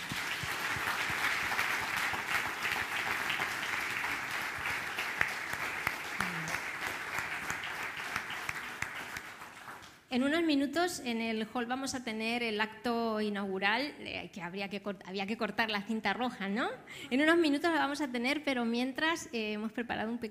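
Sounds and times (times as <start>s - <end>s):
crowd applause: 0.0s - 9.9s
speech: 10.1s - 20.2s.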